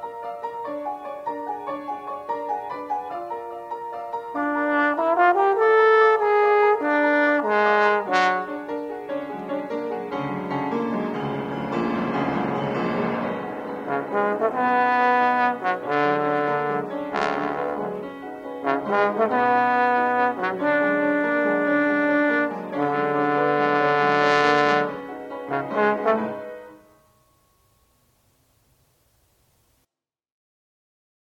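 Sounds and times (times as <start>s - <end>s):
piano: 0.0s - 29.9s
trombone: 4.3s - 9.2s, 11.2s - 27.0s.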